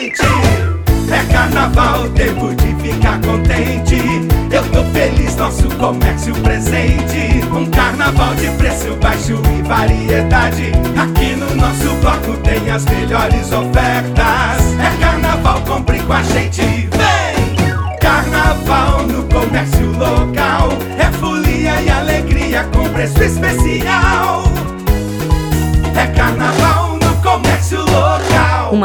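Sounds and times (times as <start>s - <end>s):
special carnival jingle: 0.2s - 28.7s.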